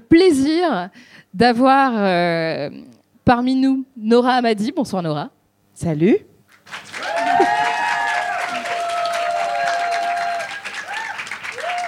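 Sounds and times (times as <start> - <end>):
speech: 0.1 - 6.9
audience applause: 6.6 - 11.8
cheering and whistling: 6.9 - 11.8.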